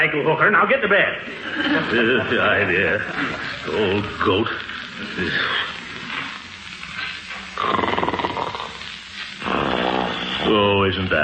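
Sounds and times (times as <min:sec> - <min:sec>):
speech: 0:00.0 - 0:05.8, 0:07.6 - 0:08.0, 0:10.5 - 0:11.2
laughter: 0:01.2 - 0:05.9
snoring: 0:07.0 - 0:10.8.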